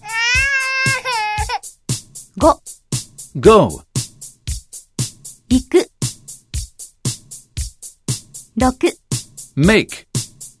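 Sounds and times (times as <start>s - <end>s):
baby crying: 0.0s - 1.7s
speech: 2.4s - 2.7s, 3.4s - 3.8s, 5.5s - 5.9s, 8.6s - 9.0s, 9.6s - 10.1s.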